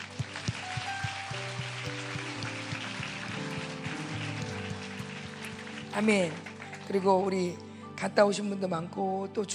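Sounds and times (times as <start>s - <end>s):
audience applause: 0.0s - 7.3s
speech: 6.0s - 9.5s.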